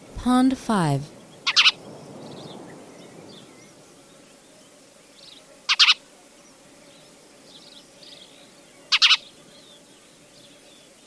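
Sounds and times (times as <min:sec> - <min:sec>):
speech: 0:00.2 - 0:01.2
Spanish sparrow chirping: 0:01.2 - 0:03.7, 0:07.5 - 0:09.8.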